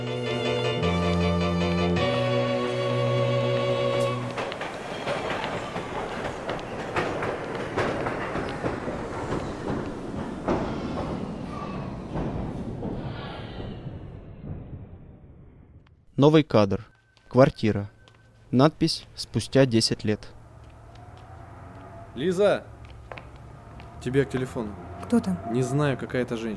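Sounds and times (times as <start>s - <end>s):
train horn tones at a railway station: 0.0s - 4.5s, 23.6s - 26.5s
rumble and clatter of rolling rail cars at a railway station: 0.0s - 15.8s, 20.1s - 26.5s
speech: 16.2s - 20.4s, 22.2s - 22.7s, 24.0s - 26.5s.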